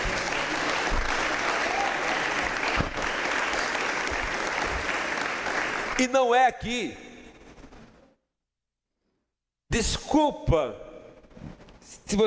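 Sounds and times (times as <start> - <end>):
audience applauding: 0.0 - 6.2
speech: 6.0 - 7.0, 9.8 - 10.8, 12.1 - 12.2.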